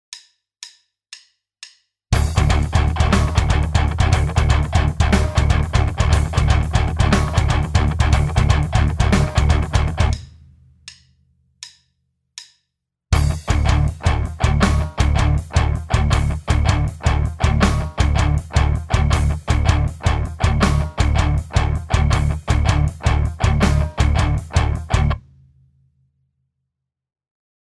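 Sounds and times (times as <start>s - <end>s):
rhythm: 2.2s - 10.3s, 13.2s - 25.2s.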